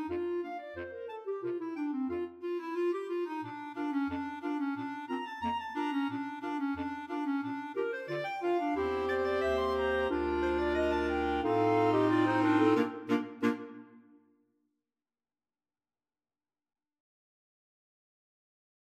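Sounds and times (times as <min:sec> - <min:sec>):
clarinet choir: 0:00.0 - 0:14.0.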